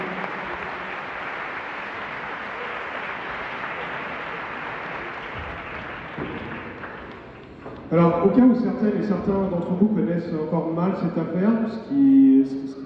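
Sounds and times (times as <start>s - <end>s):
audience applause: 0.0s - 8.0s
speech: 7.9s - 12.8s.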